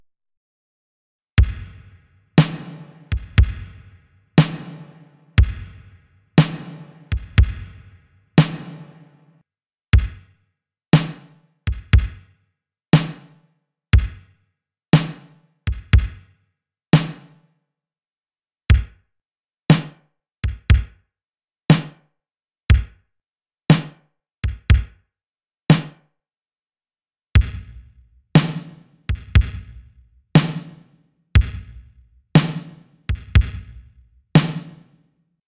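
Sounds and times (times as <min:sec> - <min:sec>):
80s drums with Quantec QRS: 0:01.4 - 0:09.3, 0:09.9 - 0:10.3, 0:10.9 - 0:12.3, 0:12.9 - 0:13.4, 0:13.9 - 0:14.3, 0:14.9 - 0:16.3, 0:16.9 - 0:17.4, 0:18.7 - 0:18.9, 0:19.7 - 0:20.9, 0:21.7 - 0:21.9, 0:22.7 - 0:22.9, 0:23.7 - 0:24.9, 0:25.7 - 0:25.9, 0:27.4 - 0:35.0.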